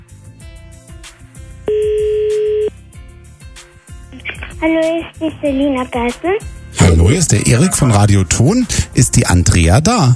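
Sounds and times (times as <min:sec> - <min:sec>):
telephone ringing: 0:01.7 - 0:02.7
speech: 0:04.6 - 0:10.1.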